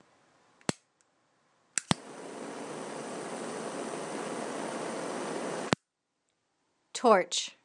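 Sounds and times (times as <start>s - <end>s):
torch: 1.8s - 5.8s.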